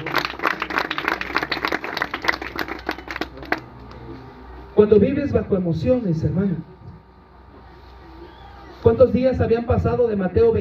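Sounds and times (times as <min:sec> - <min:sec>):
audience applause: 0:00.0 - 0:03.7
speech: 0:04.8 - 0:06.7, 0:09.0 - 0:10.5.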